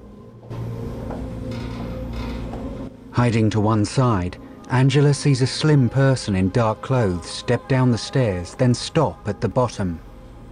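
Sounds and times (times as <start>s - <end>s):
door being pulled open with a grinding scrape: 1.4s - 2.9s
speech: 3.2s - 10.1s.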